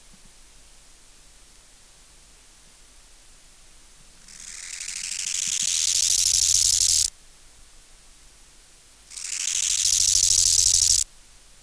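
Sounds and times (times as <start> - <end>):
Bow-winged grasshopper song: 4.8 - 7.1, 9.2 - 11.0.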